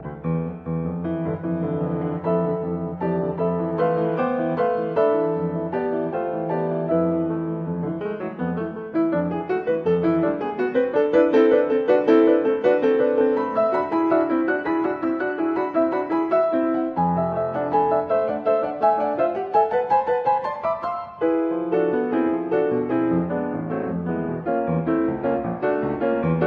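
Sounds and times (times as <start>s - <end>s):
piano sonata: 0.0s - 26.4s.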